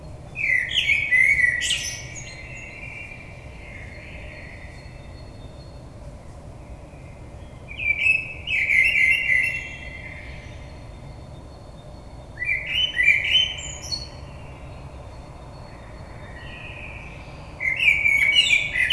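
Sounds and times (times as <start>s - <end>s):
Common blackbird singing: 0.3s - 4.9s, 7.8s - 10.6s, 12.4s - 14.8s, 15.5s - 18.9s.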